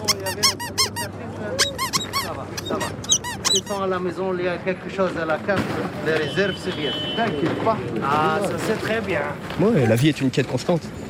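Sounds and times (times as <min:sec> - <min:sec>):
squeaky cat-shaped dog chew toy squeezed: 0:00.0 - 0:03.9
speech: 0:03.5 - 0:11.0.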